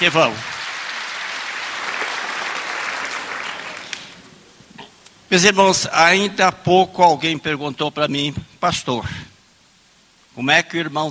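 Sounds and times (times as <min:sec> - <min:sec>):
speech: 0:00.0 - 0:00.6, 0:05.3 - 0:09.3, 0:10.4 - 0:11.0
audience applause: 0:00.0 - 0:04.2.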